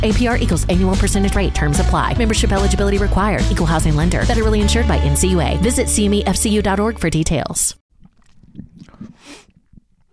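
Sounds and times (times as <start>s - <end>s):
speech: 0.0s - 7.8s
person sipping tea with a breathy slurp: 8.0s - 10.1s.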